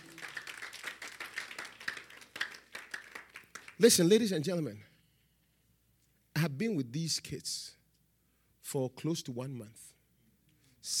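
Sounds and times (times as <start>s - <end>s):
audience clapping: 0.0s - 4.3s
speech: 3.8s - 4.9s, 6.6s - 7.8s, 8.7s - 9.9s.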